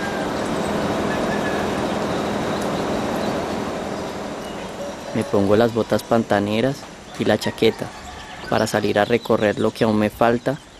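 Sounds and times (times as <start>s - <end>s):
neighbouring house's electric generator running: 0.0s - 8.2s
speech: 5.2s - 10.7s.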